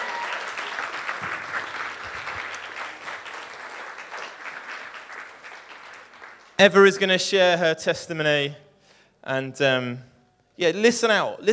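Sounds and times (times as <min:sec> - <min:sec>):
audience applause: 0:00.0 - 0:07.2
speech: 0:06.6 - 0:08.6, 0:09.2 - 0:11.5.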